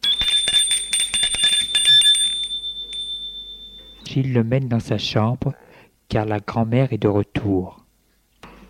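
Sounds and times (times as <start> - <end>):
doorbell ringing with metallic ringing: 0.0 - 4.1
speech: 4.2 - 7.8.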